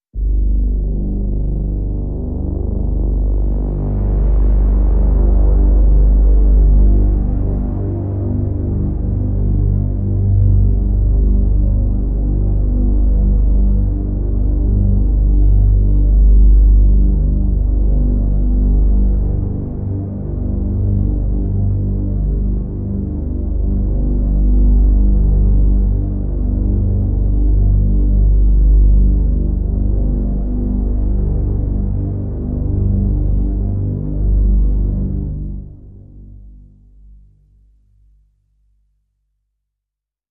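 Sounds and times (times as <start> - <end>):
drone in G: 0.2 - 37.4.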